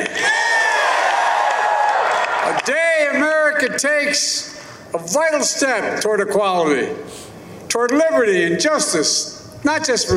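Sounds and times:
large crowd cheering at White House signing: 0.0s - 2.8s
speech: 3.6s - 10.1s.

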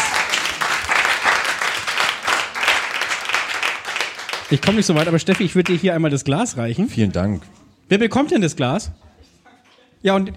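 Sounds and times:
audience applause: 0.0s - 5.8s
speech: 4.5s - 9.0s, 10.0s - 10.3s.

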